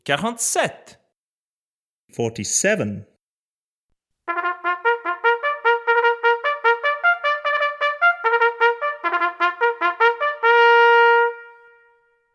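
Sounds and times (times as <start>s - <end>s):
trumpet: 4.3s - 12.3s.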